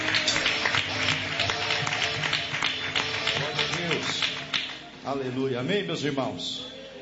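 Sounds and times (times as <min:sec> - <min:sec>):
audience applauding: 0:00.0 - 0:04.9
speech: 0:05.1 - 0:06.8.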